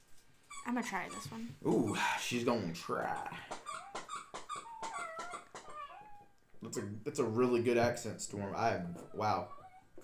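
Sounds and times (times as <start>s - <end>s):
speech: 0.7s - 3.6s, 6.6s - 10.0s
dog whimpering and whining to be played with: 3.6s - 6.4s, 8.8s - 10.0s.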